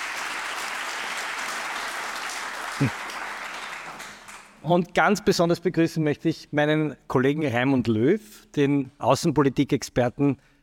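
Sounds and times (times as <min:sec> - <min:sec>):
audience clapping: 0:00.0 - 0:04.6
speech: 0:02.8 - 0:03.0, 0:04.6 - 0:10.5.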